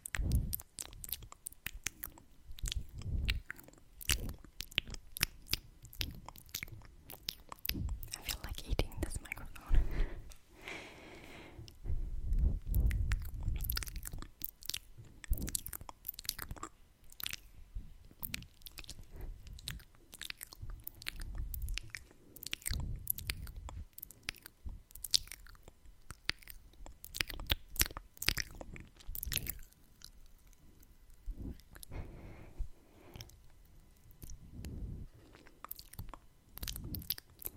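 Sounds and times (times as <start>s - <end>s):
wet tongue clicks: 0.0s - 9.4s, 12.8s - 17.5s, 18.1s - 30.4s, 34.0s - 37.5s
breathing: 9.7s - 12.6s, 19.0s - 19.5s, 31.3s - 33.4s.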